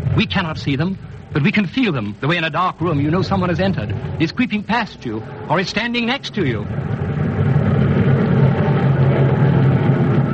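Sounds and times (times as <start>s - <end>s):
speech: 0.2s - 7.0s
wave of transport planes flying overhead: 3.6s - 10.3s.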